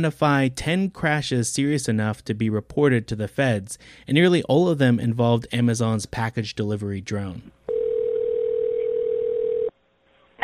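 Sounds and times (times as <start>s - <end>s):
speech: 0.0s - 7.6s
telephone line tone of a 911 emergency call: 7.7s - 9.7s.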